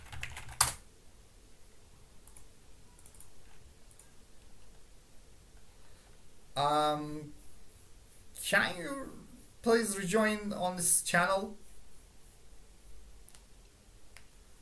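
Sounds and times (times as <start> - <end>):
faint typing on a computer keyboard while writing in a chat: 0.0 - 0.8, 2.2 - 4.8
speech: 6.6 - 7.4, 8.4 - 11.6.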